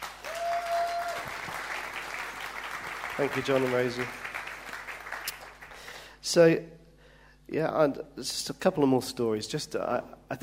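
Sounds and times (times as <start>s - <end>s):
audience applause for two people: 0.0s - 5.9s
speech: 3.2s - 4.2s, 6.3s - 6.8s, 7.5s - 10.4s.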